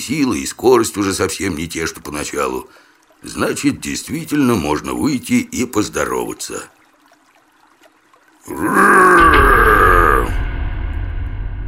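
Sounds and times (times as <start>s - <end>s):
speech: 0.0s - 6.8s, 8.4s - 9.6s
monster's battle roar: 8.5s - 10.4s.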